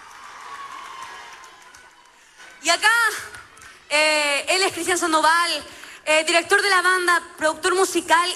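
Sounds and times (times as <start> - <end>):
audience applause: 0.0 - 2.6
speech: 2.6 - 8.3.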